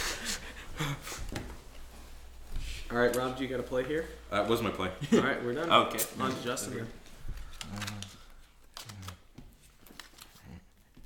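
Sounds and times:
speech: 0:00.8 - 0:01.3, 0:02.9 - 0:07.0
voices and laughter: 0:04.8 - 0:05.7
playing cards being drawn during a card game: 0:07.5 - 0:10.4.

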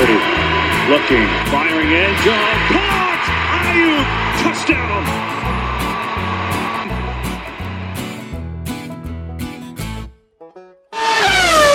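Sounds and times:
race car engine roaring past: 0:00.0 - 0:08.4, 0:11.0 - 0:11.7
rhythmic music with a steady bass pattern: 0:00.0 - 0:10.6
speech: 0:00.9 - 0:03.0, 0:03.7 - 0:05.6.

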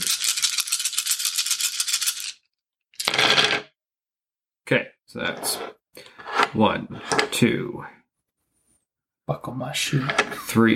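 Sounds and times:
handful of dice rattling in a cupped hand and rolling: 0:00.0 - 0:03.7
speech: 0:04.7 - 0:05.8, 0:06.5 - 0:08.0, 0:09.3 - 0:10.7.

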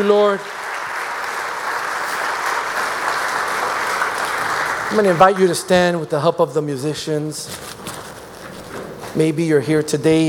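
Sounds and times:
speech: 0:00.0 - 0:00.6, 0:04.9 - 0:07.8, 0:09.2 - 0:10.2
audience clapping hands: 0:00.0 - 0:06.2.

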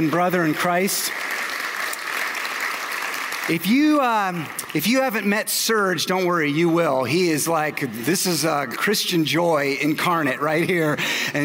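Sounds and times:
speech: 0:00.0 - 0:01.5, 0:03.5 - 0:11.4
audience applause: 0:00.0 - 0:05.5.

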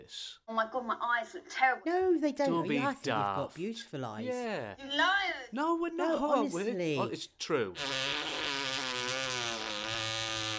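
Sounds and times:
speech: 0:00.1 - 0:08.4
long buzzy fart: 0:07.8 - 0:10.5.

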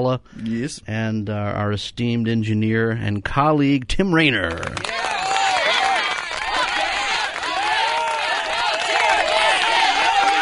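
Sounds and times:
speech: 0:00.0 - 0:05.1
studio audience cheering and shouting: 0:04.8 - 0:10.4.

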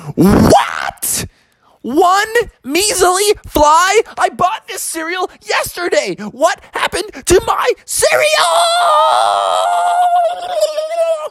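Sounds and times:
voice imitating a scream: 0:00.0 - 0:01.3, 0:07.3 - 0:11.2
speech: 0:00.1 - 0:01.2, 0:01.8 - 0:11.2.

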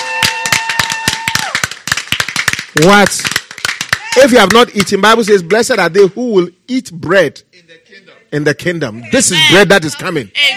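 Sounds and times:
congregation clapping at a church service: 0:00.0 - 0:05.7
speech: 0:02.8 - 0:03.4, 0:04.2 - 0:10.5.

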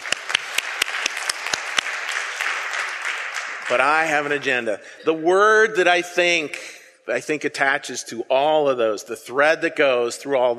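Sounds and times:
crowd applauding: 0:00.0 - 0:04.9
speech: 0:03.7 - 0:10.5.

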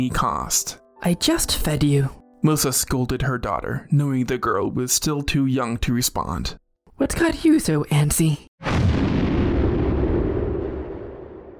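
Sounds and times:
speech: 0:00.0 - 0:09.1
deep peal of thunder: 0:08.6 - 0:11.5.

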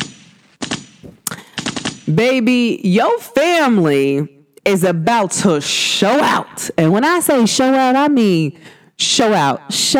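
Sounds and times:
gunshots: 0:00.0 - 0:02.2
speech: 0:02.1 - 0:09.9.

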